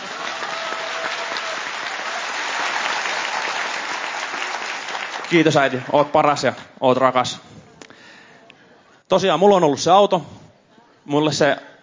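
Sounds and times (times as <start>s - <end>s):
audience applause: 0.0s - 6.2s
speech: 5.3s - 7.4s, 9.1s - 10.4s, 11.1s - 11.7s.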